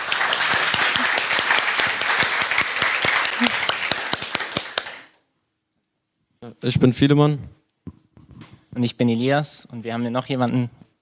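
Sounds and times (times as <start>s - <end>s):
audience clapping: 0.0s - 5.2s
speech: 6.6s - 7.6s, 8.8s - 10.8s.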